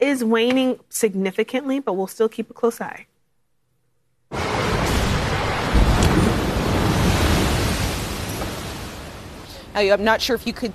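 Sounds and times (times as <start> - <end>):
speech: 0.1 - 3.1, 9.8 - 10.7
storm surge waves crashing onto a Southern California beach: 4.4 - 9.7.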